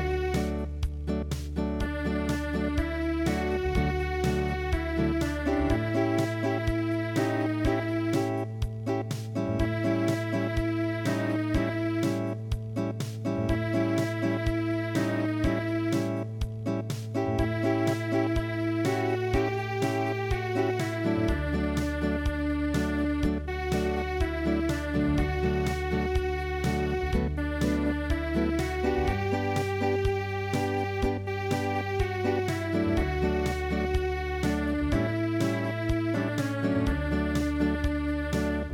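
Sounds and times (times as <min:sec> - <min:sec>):
traditional tune played as MIDI: 0:00.0 - 0:38.7.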